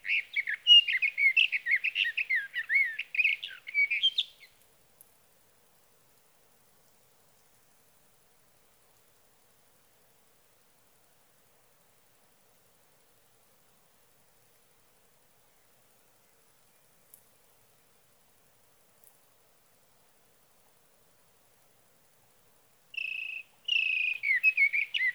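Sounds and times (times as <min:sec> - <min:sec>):
Sage thrasher singing through the night: 0:00.0 - 0:04.6, 0:23.0 - 0:25.1.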